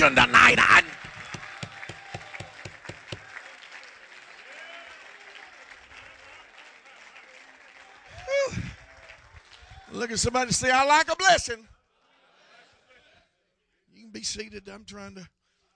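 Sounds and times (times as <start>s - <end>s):
speech: 0.0s - 1.0s, 10.0s - 11.8s, 14.1s - 15.4s
hand clapping: 0.8s - 9.8s
foot stomping: 1.0s - 3.3s.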